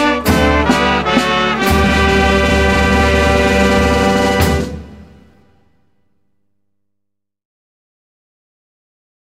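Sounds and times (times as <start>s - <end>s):
orchestral group playing: 0.0s - 5.6s.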